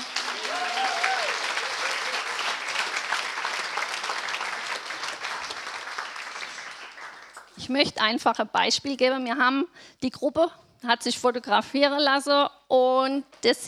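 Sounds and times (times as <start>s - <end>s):
audience applause: 0.0s - 7.6s
speech: 7.7s - 13.6s.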